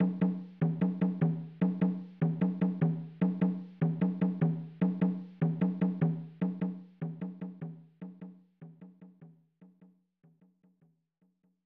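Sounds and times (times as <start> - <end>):
jungle rhythm music: 0.0 - 7.3.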